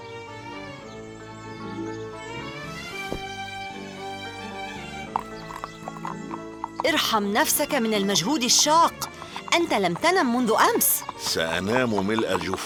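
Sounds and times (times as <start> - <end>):
steady musical backdrop: 0.0 - 12.6
donkey hooves clopping as a farmer rides off: 2.8 - 12.6
speech: 6.8 - 12.6.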